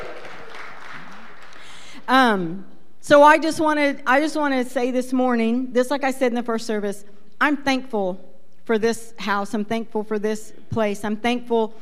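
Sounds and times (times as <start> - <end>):
church congregation cheering and shouting: 0.0 - 1.7
church congregation applauding at a morning service: 0.0 - 1.9
speech: 2.1 - 11.8.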